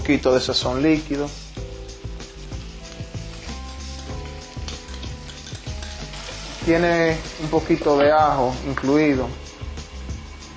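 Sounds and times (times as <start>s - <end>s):
vegetables sizzling in a hot paila: 0.0s - 10.5s
speech: 0.1s - 1.4s, 6.7s - 9.4s
light clicks of stirring: 2.7s - 6.6s.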